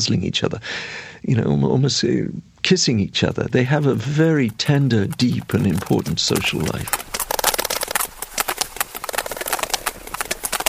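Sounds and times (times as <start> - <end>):
speech: 0.0 - 7.0
large number of sperm whales clicking: 3.2 - 10.6.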